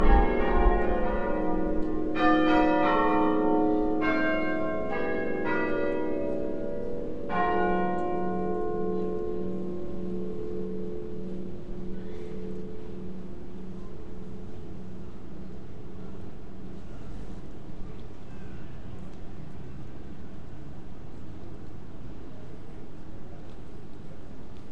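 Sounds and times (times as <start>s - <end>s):
very short burst of bellringing: 0.0s - 11.8s.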